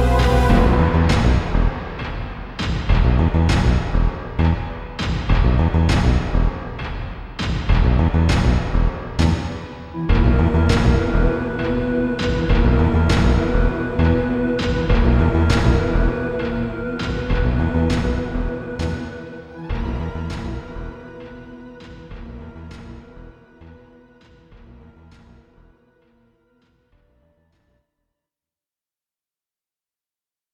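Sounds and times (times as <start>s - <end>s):
metal music: 0.0s - 23.8s.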